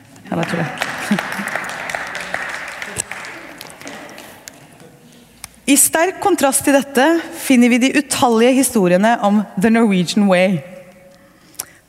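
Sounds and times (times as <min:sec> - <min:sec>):
audience applause: 0:00.3 - 0:04.7
speech: 0:00.5 - 0:00.9, 0:05.7 - 0:10.7
laughter: 0:00.8 - 0:05.0.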